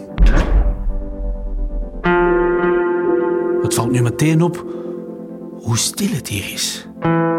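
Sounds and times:
door slamming shut with a loud bang: 0:00.0 - 0:02.8
sharp knock: 0:00.1 - 0:02.8
low droning hum: 0:00.2 - 0:02.8
speech: 0:03.7 - 0:04.8, 0:05.6 - 0:07.2.

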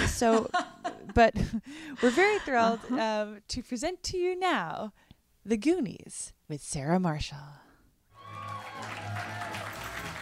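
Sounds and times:
speech: 0:00.2 - 0:07.6
live audience clapping at a comedy theater show: 0:08.2 - 0:10.2.

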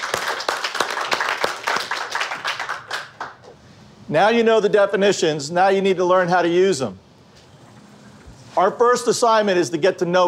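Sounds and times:
small group clapping: 0:00.0 - 0:03.6
speech: 0:04.1 - 0:07.0, 0:08.6 - 0:10.2.

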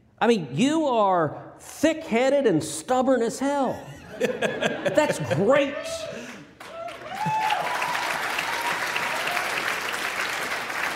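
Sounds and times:
speech: 0:00.2 - 0:06.3
laughter: 0:03.8 - 0:06.4
audience applause: 0:06.2 - 0:10.9.

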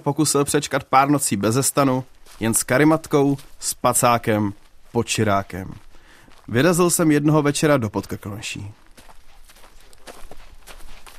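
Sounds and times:
speech: 0:00.0 - 0:05.9, 0:06.5 - 0:08.8
footsteps crunching through a forest in the Krkonoše foothills: 0:00.0 - 0:11.1.

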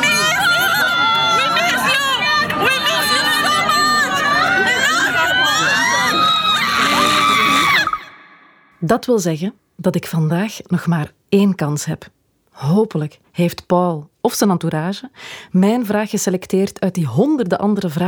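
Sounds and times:
fans cheering and shouting: 0:00.0 - 0:08.8
high-pitched screams: 0:00.0 - 0:08.8
speech: 0:08.8 - 0:18.0.

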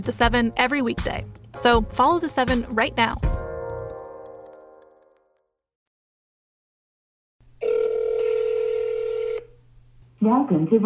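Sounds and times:
speech: 0:00.0 - 0:03.3, 0:10.2 - 0:10.8
telephone tones as a number from a business card is dialed: 0:07.6 - 0:09.5.

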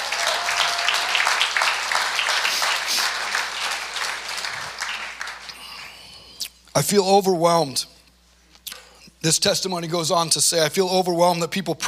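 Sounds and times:
audience applauding: 0:00.0 - 0:06.1
speech: 0:06.8 - 0:07.9, 0:09.2 - 0:11.8.

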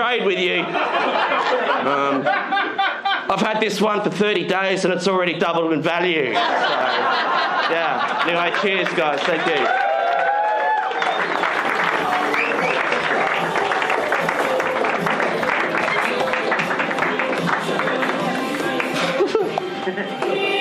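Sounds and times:
speech: 0:00.0 - 0:09.9
laughter: 0:00.2 - 0:03.5, 0:06.2 - 0:09.7, 0:11.7 - 0:20.5
audience applause: 0:08.1 - 0:19.4.

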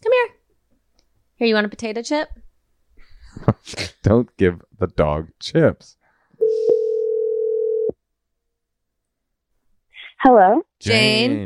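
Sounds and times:
speech: 0:01.4 - 0:02.4, 0:03.6 - 0:06.0, 0:10.2 - 0:11.4
low-pitched telephone dial tone: 0:06.4 - 0:07.9.

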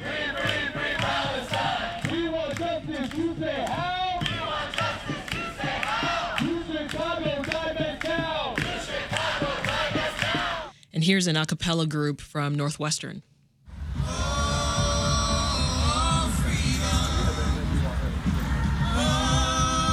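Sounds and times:
student protesters at the University of Chicago chanting: 0:00.0 - 0:10.7, 0:13.7 - 0:19.9
speech: 0:11.1 - 0:13.3.

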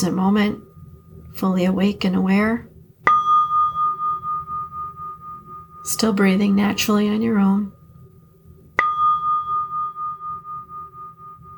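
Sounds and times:
speech: 0:00.0 - 0:00.7, 0:01.4 - 0:02.7, 0:05.8 - 0:07.8
meditation bell ringing: 0:03.0 - 0:06.1, 0:08.8 - 0:11.5.

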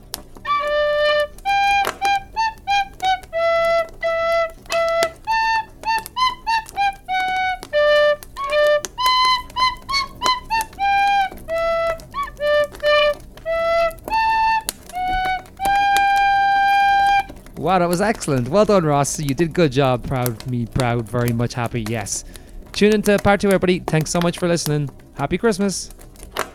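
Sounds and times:
solo tin whistle playing a Christmas tune: 0:00.0 - 0:17.4
speech: 0:17.7 - 0:26.0.

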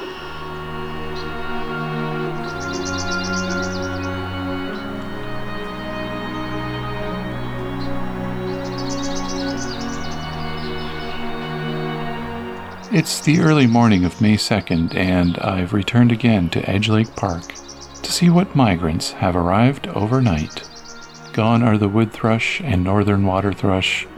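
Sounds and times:
palm warbler singing buzzy trills: 0:00.0 - 0:15.5, 0:16.9 - 0:18.4, 0:20.0 - 0:21.9
sustained musical tones: 0:00.0 - 0:24.1
speech: 0:12.9 - 0:17.6, 0:18.2 - 0:20.7, 0:21.4 - 0:24.1.

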